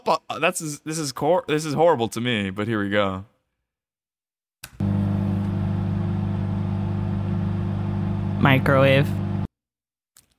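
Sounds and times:
speech: 0.1s - 3.3s, 8.4s - 9.2s
2004 Ford Ranger pickup engine: 4.8s - 9.5s.

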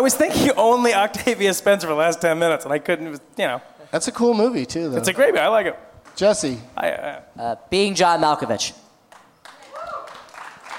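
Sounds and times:
speech: 0.0s - 8.8s
people clapping: 9.1s - 10.7s.

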